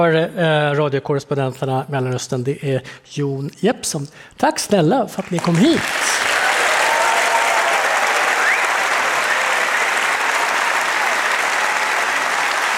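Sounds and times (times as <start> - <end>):
speech: 0.0 - 6.1
big applause from theater audience: 5.2 - 12.7.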